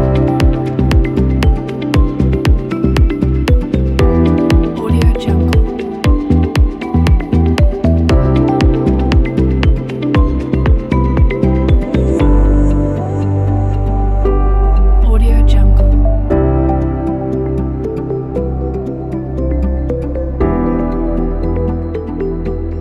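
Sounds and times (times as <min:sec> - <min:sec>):
minimal inspiring ambient music: 0:00.0 - 0:22.8.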